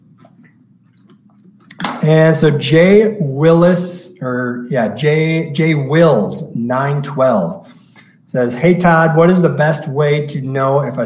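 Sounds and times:
low steady hum: 0.0 - 11.0
person sipping water and swallowing: 0.1 - 2.0
speech: 2.0 - 7.7, 8.3 - 11.0.

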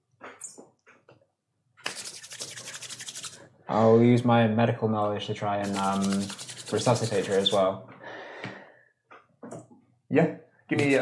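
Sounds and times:
hands rubbing together: 1.8 - 3.4, 5.6 - 7.6, 10.8 - 11.0
speech: 3.7 - 7.9, 10.1 - 11.0.

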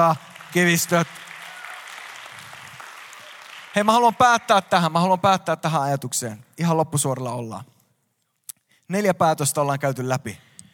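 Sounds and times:
speech: 0.0 - 1.3, 3.8 - 7.8, 8.9 - 10.5
audience applause: 0.0 - 5.0.

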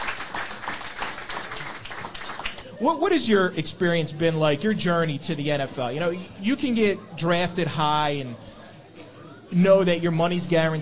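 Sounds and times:
audience clapping welcoming a football player interview guest: 0.0 - 2.8
speech: 2.8 - 8.5, 9.5 - 10.7.

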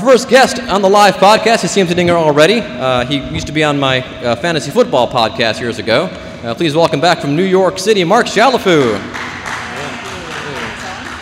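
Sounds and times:
speech: 0.1 - 9.3
live audience applause: 8.7 - 11.2.

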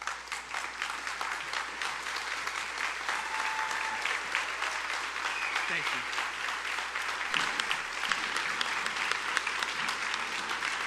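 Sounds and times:
audience applauding: 0.0 - 10.8
speech: 5.7 - 6.3.

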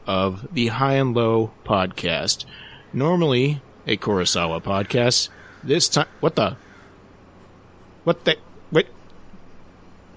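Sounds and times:
speech: 0.1 - 6.7, 8.0 - 9.0
crows cawing: 4.8 - 7.1.

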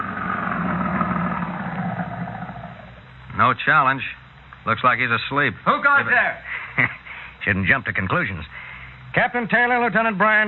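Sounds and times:
car engine as the car drives up to a Defense Department storage depot gate: 0.0 - 7.8
speech: 3.4 - 10.4.

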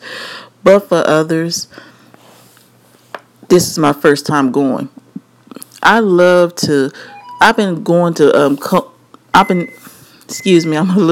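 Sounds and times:
speech: 0.6 - 1.9, 3.5 - 5.0, 5.8 - 11.1
microwave oven timer beeping: 7.0 - 7.6, 9.4 - 11.1.

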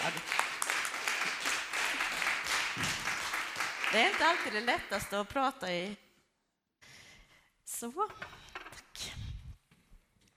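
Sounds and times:
applause: 0.0 - 5.2
speech: 3.9 - 6.0, 7.8 - 8.4.

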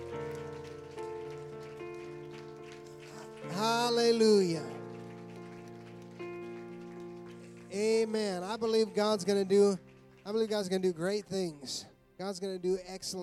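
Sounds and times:
audience clapping in praise: 0.0 - 11.8
speech: 3.6 - 4.8, 8.0 - 13.2.

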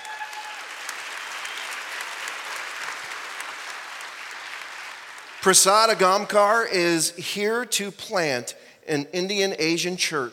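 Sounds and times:
audience applause and cheering: 0.0 - 6.0
speech: 5.4 - 10.3.

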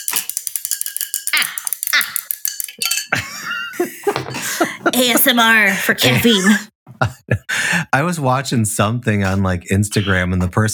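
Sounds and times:
spoon clinking while stirring tea in cup: 0.0 - 4.5
speech: 1.4 - 2.2, 4.6 - 7.2, 8.0 - 10.7
laughter: 3.0 - 10.6.

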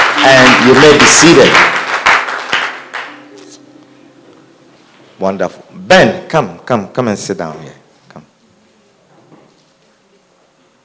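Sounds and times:
audience clapping hands: 0.0 - 3.6
speech: 0.2 - 1.8, 5.2 - 8.3.

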